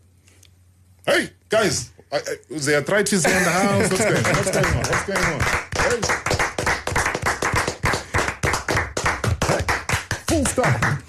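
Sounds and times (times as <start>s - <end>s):
speech: 1.1s - 6.3s
laughter: 3.2s - 6.0s
audience clapping: 3.8s - 11.0s.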